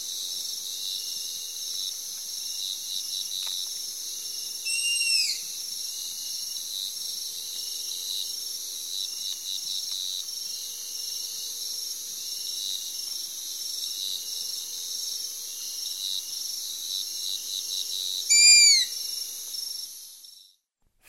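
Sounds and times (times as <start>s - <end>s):
insect chorus: 0.0s - 20.6s
striped owl giving a downslurred whistle: 4.6s - 5.6s, 18.2s - 19.0s.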